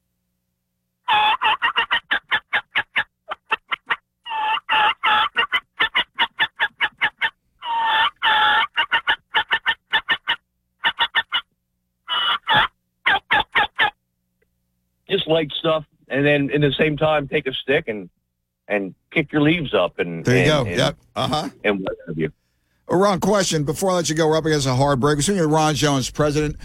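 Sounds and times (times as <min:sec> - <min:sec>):
turkey call flock sounds and yelps: 0:01.0 - 0:14.0
speech: 0:15.3 - 0:26.6.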